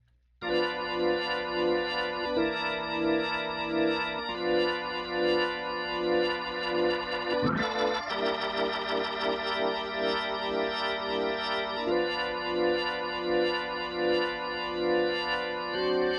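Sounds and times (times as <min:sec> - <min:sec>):
organ: 0:00.4 - 0:16.1.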